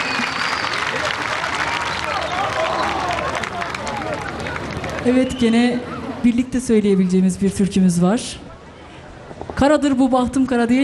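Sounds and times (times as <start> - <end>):
audience applause: 0.0 - 5.1
speech: 5.0 - 8.4, 9.6 - 10.8.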